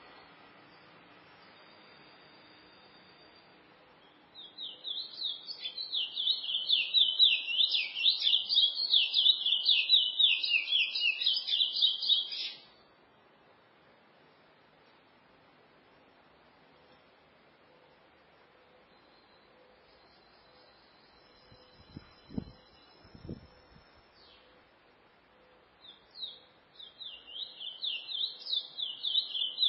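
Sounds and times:
chestnut-bellied seed finch singing: 4.0 - 12.6, 25.8 - 29.6.

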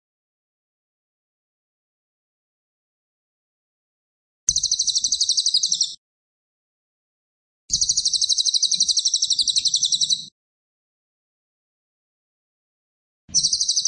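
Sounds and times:
cililin singing fast shrill pulsed trills: 4.5 - 6.0, 7.7 - 10.3, 13.3 - 13.8.

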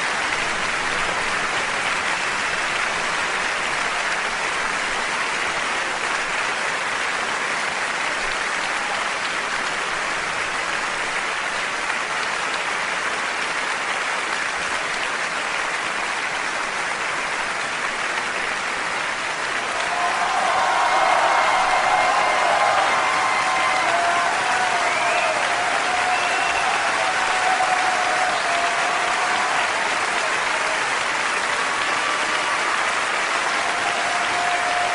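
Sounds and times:
audience applause in an auditorium after a speech: 0.0 - 34.9
faint cheering: 19.5 - 34.9.

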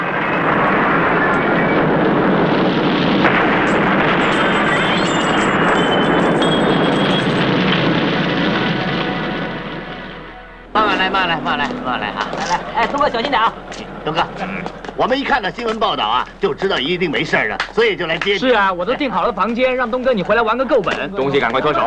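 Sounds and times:
gas explosion caused by gas left turned on: 0.0 - 19.8
brief wavering warbling tone: 3.3 - 17.0
speech: 11.3 - 21.8.

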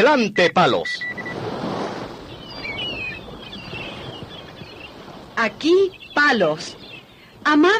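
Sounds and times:
speech: 0.0 - 1.1, 5.4 - 6.8, 7.4 - 7.7
low churning rumble: 1.0 - 7.7
sea and wind wash at a harbour quay: 1.0 - 7.7
faint high bird calls: 2.0 - 7.7.

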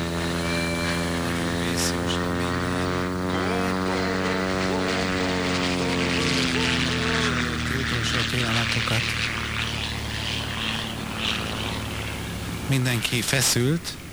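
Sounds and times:
squadron of F-16 fighter jets roaring overhead: 0.0 - 14.1
speech: 8.4 - 9.4, 12.7 - 14.0.

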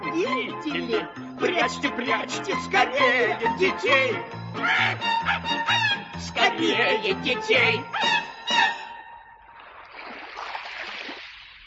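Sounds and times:
speech: 0.2 - 8.6
sea waves: 9.4 - 11.6.

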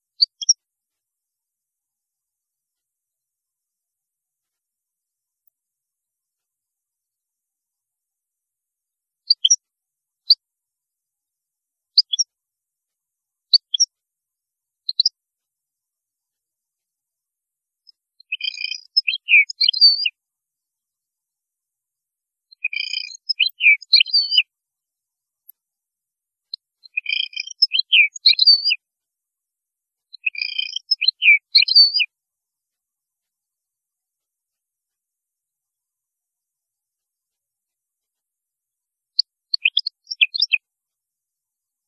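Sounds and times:
European goldfinch singing: 18.2 - 20.1, 22.6 - 24.4, 26.9 - 28.8, 30.2 - 32.1, 39.6 - 40.6.

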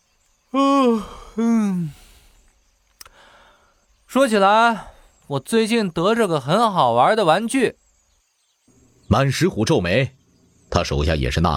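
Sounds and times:
speech: 0.5 - 2.0, 4.1 - 7.8, 9.1 - 11.5
person acting out a yawn: 0.5 - 3.6
faint click: 2.4 - 3.2.

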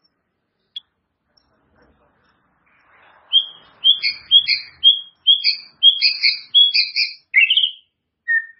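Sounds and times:
White-rumped shama song of whistles and warbled phrases: 3.3 - 8.5.

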